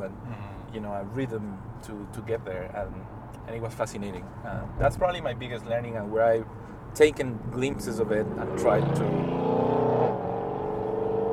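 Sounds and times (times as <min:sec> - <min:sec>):
speech: 0:00.0 - 0:09.7
very loud car engine roaring on a Shanghai street: 0:07.2 - 0:11.3.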